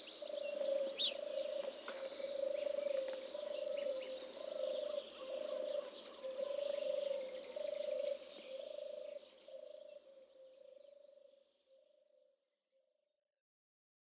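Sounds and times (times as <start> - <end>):
Eurasian collared dove cooing: 0.0 - 9.2.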